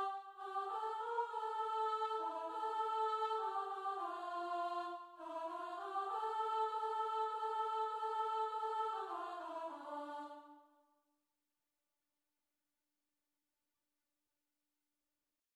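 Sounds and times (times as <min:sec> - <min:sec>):
soprano singing: 0:00.0 - 0:10.5.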